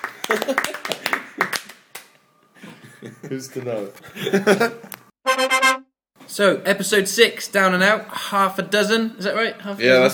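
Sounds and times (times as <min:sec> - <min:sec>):
hand clapping: 0:00.0 - 0:02.2
speech: 0:00.3 - 0:00.7, 0:03.2 - 0:05.0, 0:06.4 - 0:10.1
laughter: 0:02.6 - 0:04.9.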